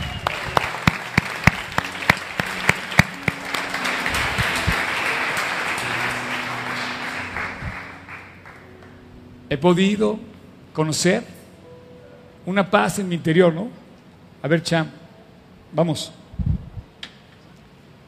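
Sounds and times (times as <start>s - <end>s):
applause: 0.0s - 9.0s
speech: 9.5s - 11.3s, 12.4s - 13.8s, 14.4s - 15.0s, 15.7s - 16.2s.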